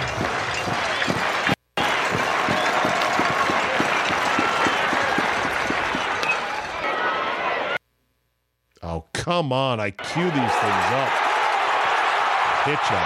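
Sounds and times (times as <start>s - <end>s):
rhythmic thumps of clapping or stomping: 0.0s - 6.6s
packed baseball stadium crowd cheering: 0.0s - 7.8s, 10.0s - 13.0s
speech: 9.3s - 11.2s, 12.7s - 13.0s.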